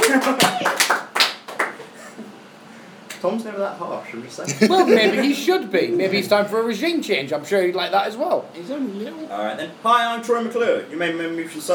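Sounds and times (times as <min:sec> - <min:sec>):
applause: 0:00.0 - 0:01.8
speech: 0:03.2 - 0:11.7
laughter: 0:04.5 - 0:05.6.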